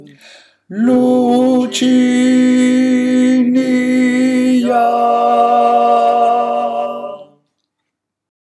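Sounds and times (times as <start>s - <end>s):
tenor voice stem: 0.7s - 7.3s.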